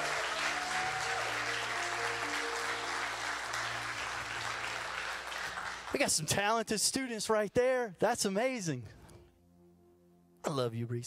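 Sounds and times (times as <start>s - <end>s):
audience applause: 0.0s - 6.3s
speech: 5.9s - 9.0s, 10.5s - 11.0s.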